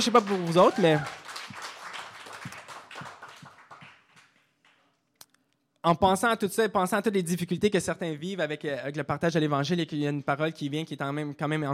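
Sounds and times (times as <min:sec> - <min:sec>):
speech: 0:00.0 - 0:01.2, 0:05.8 - 0:11.7
woman clapping her hands alone: 0:00.0 - 0:04.8.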